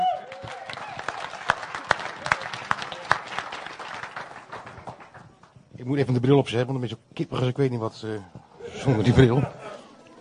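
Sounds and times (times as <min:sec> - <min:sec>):
audience applause: 0:00.0 - 0:05.6
speech: 0:05.9 - 0:09.6.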